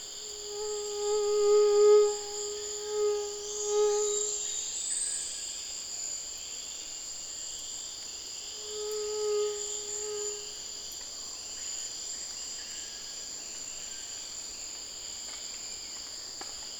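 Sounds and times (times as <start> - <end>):
steady high insect drone: 0.0 - 16.7
mosquito buzz: 0.4 - 4.4, 8.7 - 10.5.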